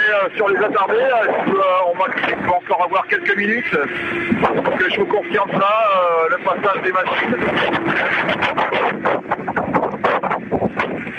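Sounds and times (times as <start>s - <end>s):
gusty wind buffeting a microphone: 0.0s - 11.1s
speech: 0.1s - 9.4s.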